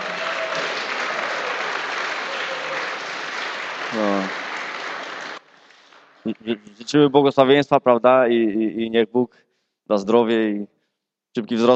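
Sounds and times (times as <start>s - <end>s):
audience applauding: 0.0s - 6.4s
speech: 6.4s - 10.7s, 11.4s - 11.7s.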